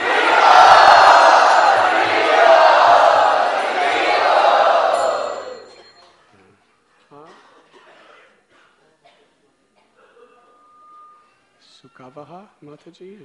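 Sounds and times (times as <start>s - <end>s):
crowd cheering loudly in welcome: 0.0s - 6.0s
speech: 12.2s - 13.2s.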